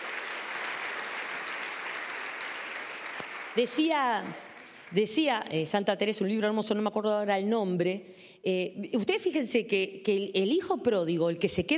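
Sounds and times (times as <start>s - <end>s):
crowd applause: 0.0s - 5.0s
speech: 3.6s - 11.7s.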